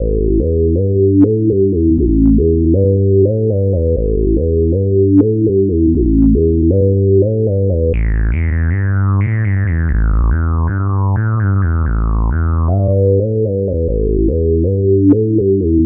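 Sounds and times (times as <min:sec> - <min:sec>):
synth arpeggio line: 0:00.0 - 0:15.8.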